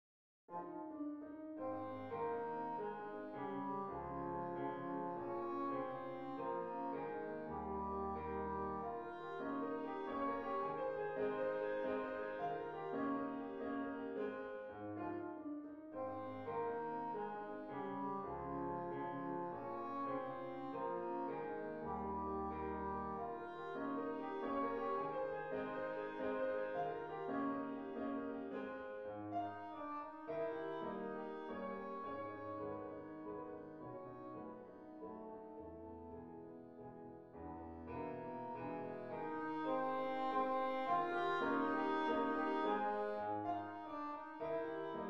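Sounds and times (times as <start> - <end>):
waltz music: 0.5 - 45.0.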